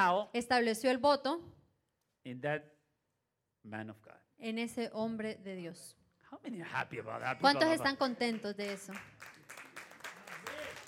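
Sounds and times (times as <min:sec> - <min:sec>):
speech: 0:00.0 - 0:01.6, 0:02.2 - 0:02.8, 0:03.6 - 0:09.6
audience applause: 0:08.2 - 0:10.8.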